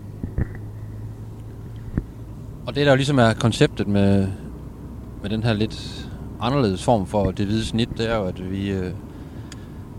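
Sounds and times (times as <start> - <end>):
car cabin road and engine rumble on the motorway from Randers toward Aarhus: 0.0 - 9.9
speech: 2.7 - 4.4, 5.2 - 9.1.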